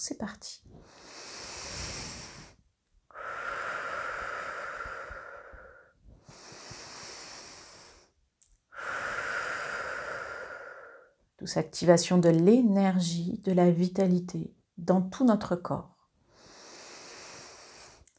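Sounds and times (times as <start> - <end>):
speech: 0.0 - 1.0, 11.4 - 15.9
deep slow breathing during a guided energy exercise: 0.7 - 11.2.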